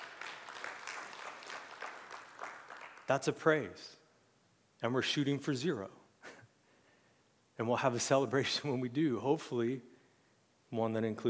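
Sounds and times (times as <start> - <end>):
audience applause: 0.0 - 3.1
speech: 3.1 - 4.0, 4.8 - 6.0, 7.6 - 9.9, 10.7 - 11.2.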